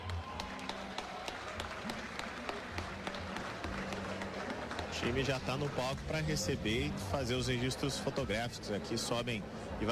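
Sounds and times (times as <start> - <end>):
audience applause: 0.0 - 6.2
speech: 5.0 - 9.9.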